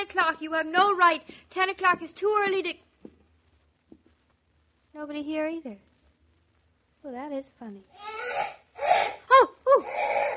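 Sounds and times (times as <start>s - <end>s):
speech: 0.0s - 2.9s, 5.0s - 5.9s, 7.0s - 10.0s
parrot squawking: 8.0s - 10.3s.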